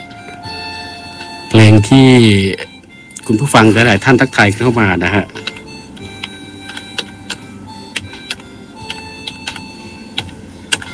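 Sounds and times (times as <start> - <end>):
faint steady tonal background: 0.0 - 10.9
speech: 1.5 - 2.7, 3.3 - 5.5
keyboard typing: 5.4 - 10.9.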